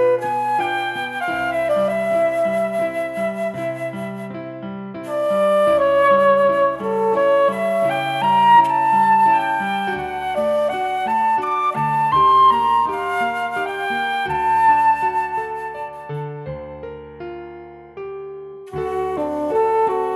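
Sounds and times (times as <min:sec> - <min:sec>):
suite for two flutes: 0:00.0 - 0:17.4, 0:18.6 - 0:20.1.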